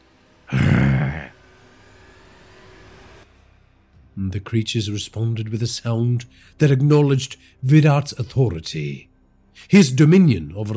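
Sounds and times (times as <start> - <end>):
man growling: 0.5 - 1.4
speech: 4.2 - 10.7.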